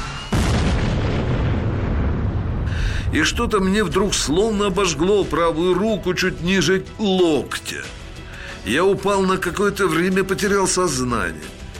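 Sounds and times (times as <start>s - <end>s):
tank ammunition rack detonating: 0.0s - 5.6s
speech: 3.1s - 8.0s, 8.6s - 11.6s.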